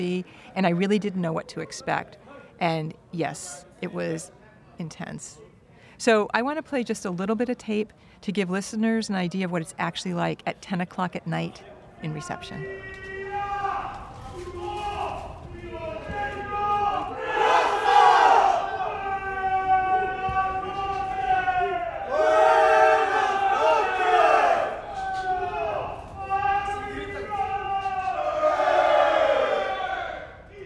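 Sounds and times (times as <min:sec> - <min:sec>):
speech: 0:00.0 - 0:13.1
inmates shouting during prison reception shutdown: 0:12.6 - 0:30.6.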